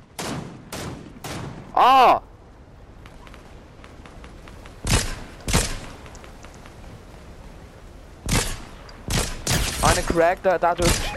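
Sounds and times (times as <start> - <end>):
gunfire in the video game Fortnite: 0.0 - 1.7, 4.8 - 6.0, 8.2 - 10.2, 10.8 - 11.1
speech: 1.8 - 2.3, 10.1 - 11.1.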